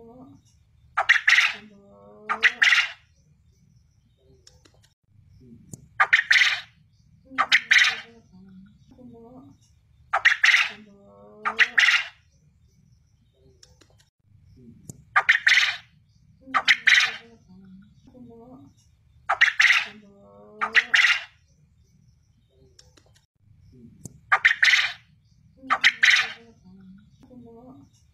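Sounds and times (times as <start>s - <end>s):
quail calling in rasping triple phrases: 1.0s - 3.1s, 6.0s - 8.2s, 10.1s - 12.2s, 15.2s - 15.9s, 16.5s - 17.3s, 19.3s - 21.4s, 24.3s - 26.5s.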